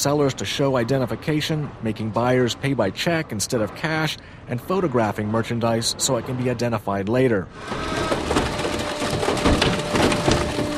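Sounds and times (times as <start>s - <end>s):
speech: 0.0s - 8.5s
steady mechanical hum: 0.0s - 10.7s
car being crushed at a scrapyard: 7.5s - 10.7s.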